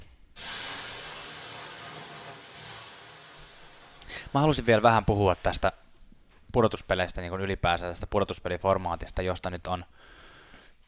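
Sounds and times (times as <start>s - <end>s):
water thrown on sauna stove, hissing steam: 0.4s - 4.6s
speech: 4.3s - 5.8s, 6.5s - 10.2s.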